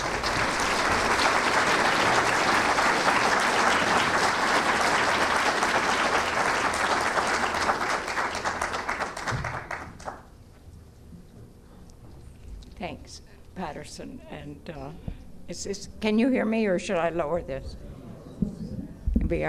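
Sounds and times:
audience applause: 0.0 - 10.3
speech: 14.0 - 17.9, 19.3 - 19.4.

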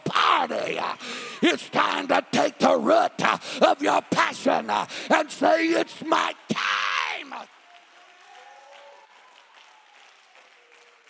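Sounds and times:
speech: 0.4 - 6.4
audience clapping hands: 7.1 - 11.0.

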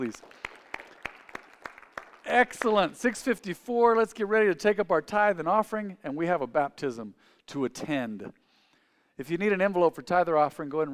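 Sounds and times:
speech: 0.0 - 0.5, 2.3 - 8.4, 9.2 - 10.9
audience clapping: 0.0 - 3.2.

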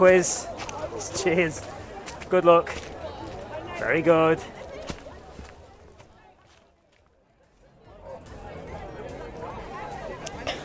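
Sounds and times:
speech: 0.0 - 2.9, 3.8 - 4.6
crowd chatter at a quiz: 0.0 - 10.6.

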